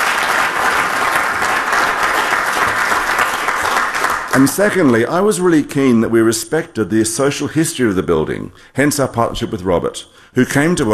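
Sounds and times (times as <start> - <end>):
audience applause: 0.0 - 5.0
speech: 4.4 - 10.9.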